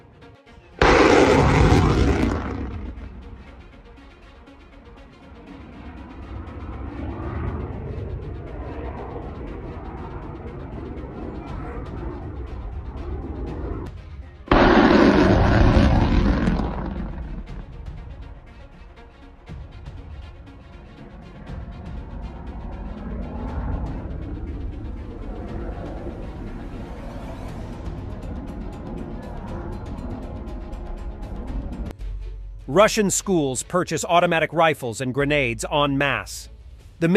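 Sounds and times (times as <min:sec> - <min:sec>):
air defence fire shooting down cruise missiles over Odesa region at night: 0:00.8 - 0:03.6, 0:14.5 - 0:17.9
long low rumble: 0:00.8 - 0:04.2, 0:04.8 - 0:19.0, 0:19.6 - 0:32.0
speech: 0:32.8 - 0:37.1.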